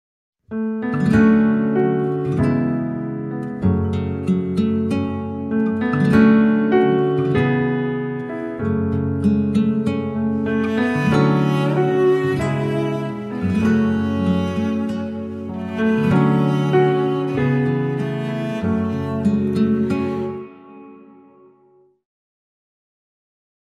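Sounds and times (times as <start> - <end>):
instrumental chorale: 0.5 - 22.0.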